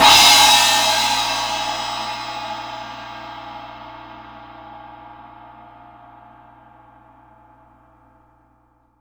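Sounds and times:
cymbal hit: 0.0s - 3.9s.

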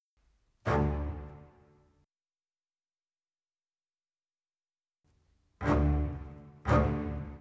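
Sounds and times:
orchestral bass: 0.7s - 1.6s, 5.6s - 7.4s.

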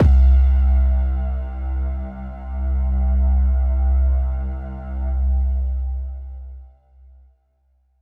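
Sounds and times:
Prophet synth bass note C: 0.0s - 6.3s.

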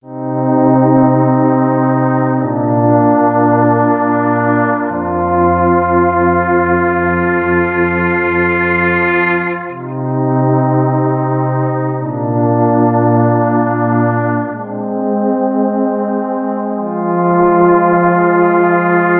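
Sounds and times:
electro lounge synth pads: 0.0s - 19.1s.

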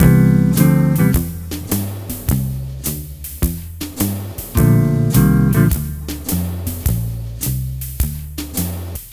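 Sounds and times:
multi guitar swing mix: 0.0s - 2.6s, 4.5s - 7.1s.

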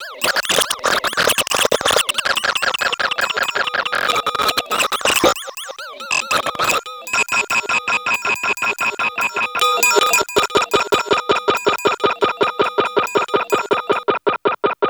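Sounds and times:
twisted blurp special effects: 0.1s - 14.8s.

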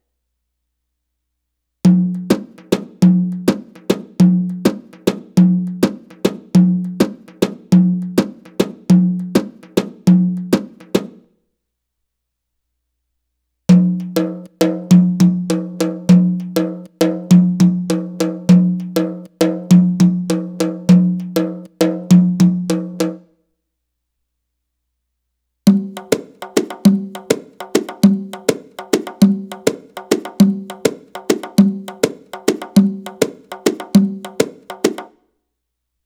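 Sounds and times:
Arabic rhythm percussion: 2.0s - 11.2s, 13.7s - 23.2s, 25.7s - 35.2s.

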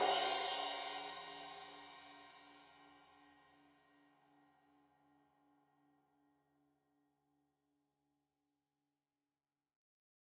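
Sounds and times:
15 inch crash cymbal edge hit: 0.0s - 2.2s.

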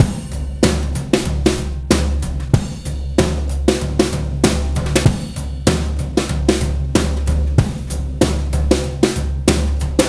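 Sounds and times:
breakbeat drums: 0.0s - 10.0s.

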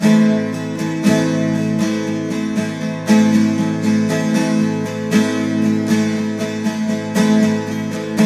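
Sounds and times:
12-string guitar playing in A sharp minor: 0.0s - 8.2s.

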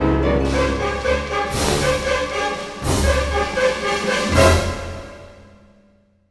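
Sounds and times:
orchestral music loop: 0.0s - 5.5s.

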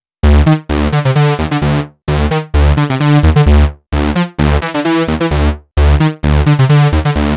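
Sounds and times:
NRG trance bass: 0.2s - 7.3s.

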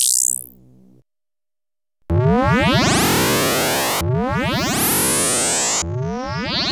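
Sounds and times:
rising bleep: 2.1s - 6.7s.

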